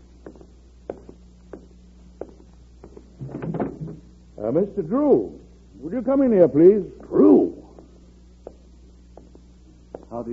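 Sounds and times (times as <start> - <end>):
door being opened: 3.2 - 4.1
speech: 4.4 - 7.2.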